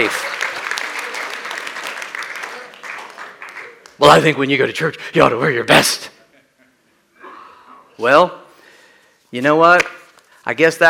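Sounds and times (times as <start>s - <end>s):
speech: 0.0s - 0.3s, 4.0s - 6.1s, 8.0s - 8.4s, 9.3s - 10.8s
audience clapping: 0.0s - 4.4s.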